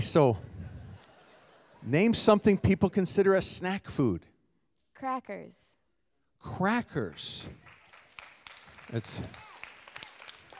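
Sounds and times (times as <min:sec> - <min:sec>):
speech: 0:00.0 - 0:00.5, 0:01.8 - 0:04.3, 0:05.0 - 0:05.7, 0:06.4 - 0:07.6, 0:08.9 - 0:09.4
laughter: 0:00.2 - 0:03.4
audience applauding: 0:07.0 - 0:10.5.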